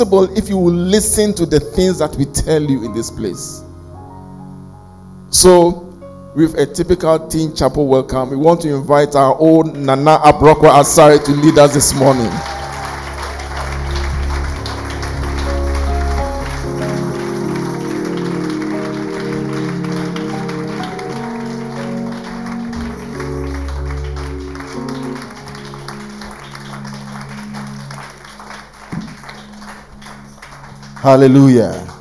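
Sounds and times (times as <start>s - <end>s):
speech: 0.0s - 3.6s, 5.3s - 5.8s, 6.4s - 12.5s, 31.1s - 31.9s
audience round of applause: 10.5s - 32.0s.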